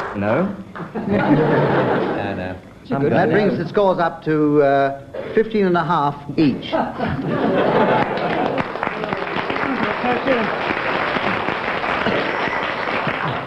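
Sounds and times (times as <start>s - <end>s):
speech: 0.2s - 8.0s, 10.1s - 10.8s
laughter: 0.8s - 3.6s, 7.0s - 13.4s
audience clapping: 7.6s - 13.4s.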